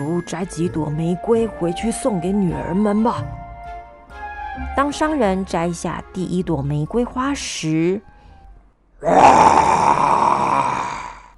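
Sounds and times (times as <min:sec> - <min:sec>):
speech: 0:00.0 - 0:03.4, 0:04.6 - 0:08.1, 0:09.0 - 0:10.0
monster's loud roar: 0:09.0 - 0:11.3.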